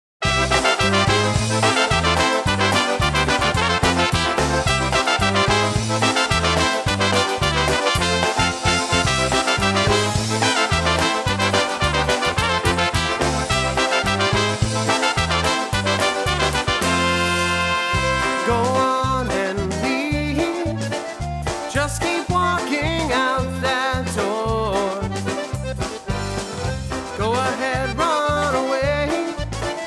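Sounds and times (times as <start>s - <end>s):
polka music: 0.2s - 29.8s.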